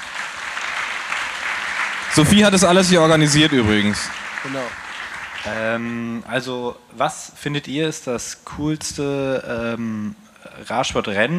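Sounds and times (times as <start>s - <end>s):
audience applause: 0.0s - 6.1s
speech: 2.2s - 4.8s, 5.4s - 11.3s.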